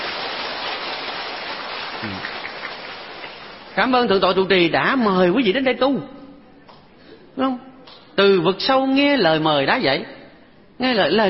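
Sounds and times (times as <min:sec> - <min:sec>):
audience applause: 0:00.0 - 0:03.7
speech: 0:02.0 - 0:02.4, 0:03.8 - 0:06.2, 0:07.4 - 0:10.2, 0:10.8 - 0:11.2.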